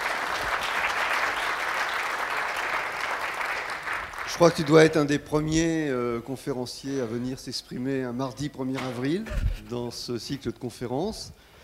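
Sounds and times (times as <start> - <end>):
audience applause: 0.0 - 5.0
speech: 4.3 - 11.4.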